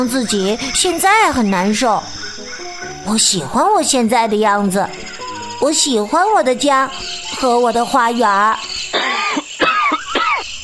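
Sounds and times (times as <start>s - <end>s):
speech: 0.0s - 8.7s
old man coughing hoarsely: 8.9s - 10.4s.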